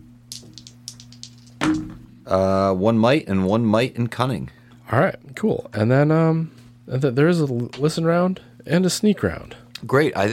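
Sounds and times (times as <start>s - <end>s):
dice rattling and clattering: 0.3s - 1.9s
speech: 2.3s - 10.3s.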